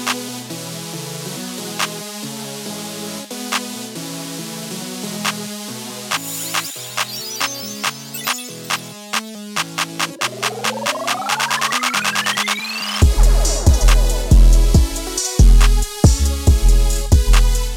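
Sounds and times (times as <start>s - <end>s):
hyperpop music: 5.2s - 17.7s.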